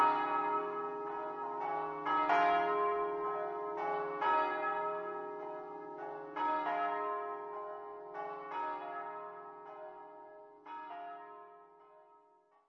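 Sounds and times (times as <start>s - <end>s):
bells ringing: 0.0s - 8.9s.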